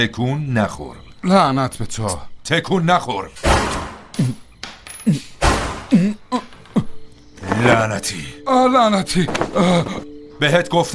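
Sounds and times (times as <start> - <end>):
speech: 0.0 - 4.4, 5.0 - 5.3, 7.6 - 10.9
gunshot: 3.4 - 4.1, 5.4 - 5.9.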